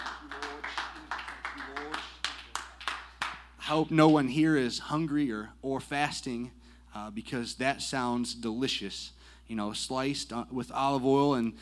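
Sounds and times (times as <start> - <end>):
audience clapping hands: 0.0 - 4.3
speech: 3.7 - 11.6.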